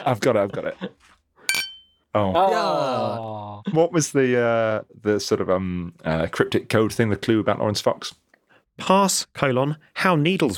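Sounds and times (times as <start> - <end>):
speech: 0.0 - 1.2, 2.1 - 8.2, 8.8 - 10.5
glass clinking chime: 1.5 - 2.0.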